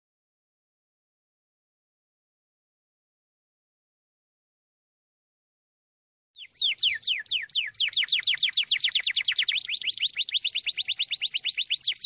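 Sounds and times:
bird singing: 6.4 - 12.0.

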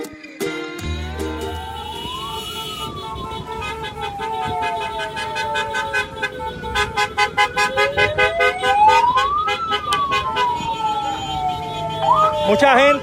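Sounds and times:
car horns honking at a protest caravan: 0.6 - 13.0.

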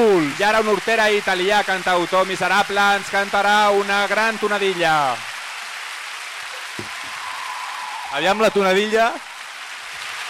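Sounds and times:
euphoric drunken crowd applauding: 0.0 - 10.2
speech: 0.2 - 5.3, 8.1 - 9.3.

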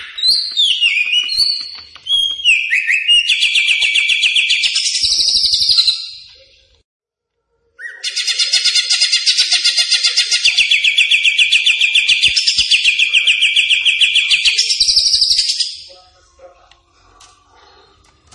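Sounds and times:
greater green leafbird song: 0.0 - 6.8, 7.8 - 16.0.

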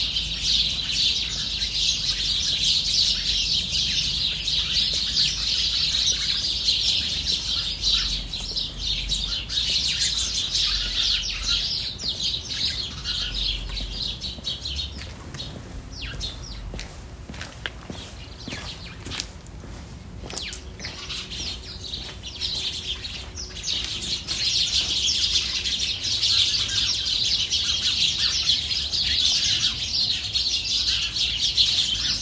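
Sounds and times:
starlings chattering: 0.0 - 32.1.

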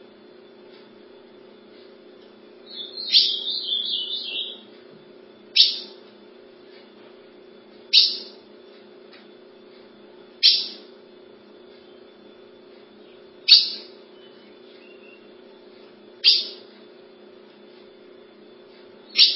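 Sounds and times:
ultramarine grosbeak whistling song: 2.6 - 4.7, 5.6 - 6.0, 7.9 - 8.4, 10.4 - 10.9, 13.0 - 15.4, 16.2 - 16.6, 19.1 - 19.3.

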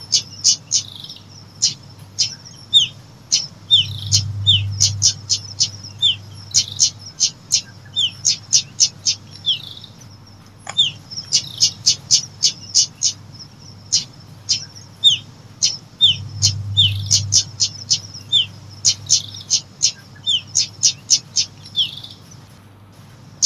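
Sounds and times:
lovebird giving high sharp chirps: 2.2 - 10.0, 10.6 - 20.8.

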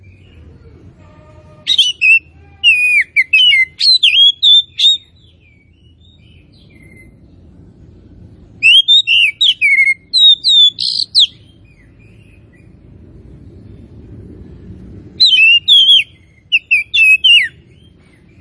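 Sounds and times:
Oriental magpie-robin giving loud whistles and buzzy note: 1.7 - 5.1, 8.6 - 11.4, 15.2 - 17.6.

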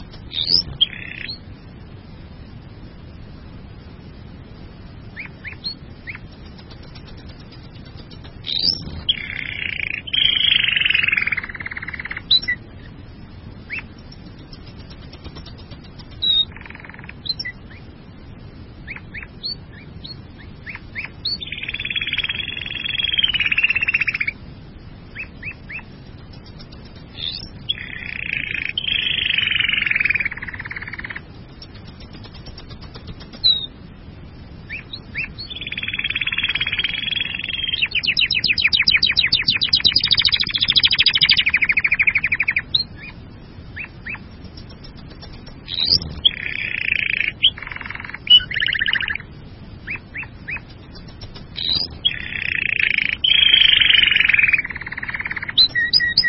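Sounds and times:
bird song with chirps and buzzy trill: 0.0 - 1.5, 5.1 - 18.0, 18.8 - 24.4, 25.0 - 33.8, 34.6 - 56.2.

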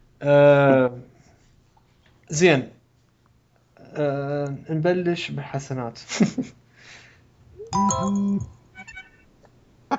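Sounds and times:
speech: 0.2 - 1.1, 2.3 - 2.8, 4.0 - 7.0, 7.7 - 8.6
phone text message notification tone: 7.8 - 8.6.

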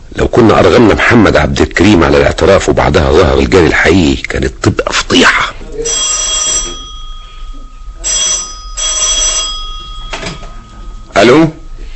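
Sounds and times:
speech: 0.4 - 6.6, 11.2 - 11.6
telephone ringing with a rattling bell tone: 5.8 - 11.9.

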